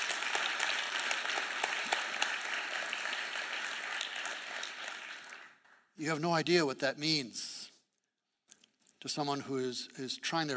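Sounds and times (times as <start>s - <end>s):
audience applause: 0.0s - 5.8s
speech: 6.0s - 7.6s, 9.0s - 10.5s.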